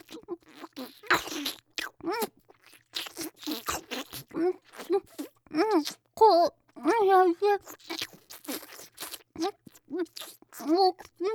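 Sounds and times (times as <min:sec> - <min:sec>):
crunchy bites and chewing of food: 0:00.0 - 0:06.0, 0:07.6 - 0:11.2.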